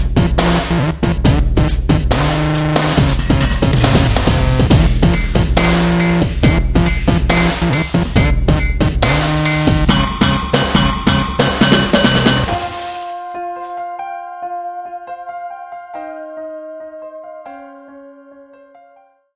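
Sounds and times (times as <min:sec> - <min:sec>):
dubstep music: 0:00.0 - 0:14.0.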